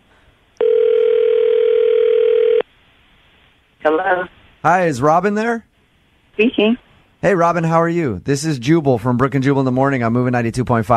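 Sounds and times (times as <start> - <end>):
ringback tone on an outgoing phone call: 0.6 - 2.6
speech: 3.8 - 5.7, 6.4 - 10.9.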